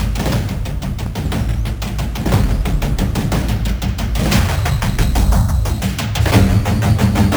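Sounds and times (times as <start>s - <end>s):
tight step loop with chorus and phaser: 0.2s - 7.2s.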